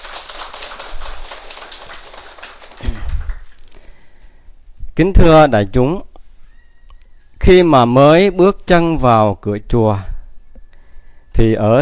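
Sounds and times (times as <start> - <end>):
audience applause: 0.0 - 3.6
speech: 5.0 - 6.1, 7.4 - 10.1, 11.4 - 11.7.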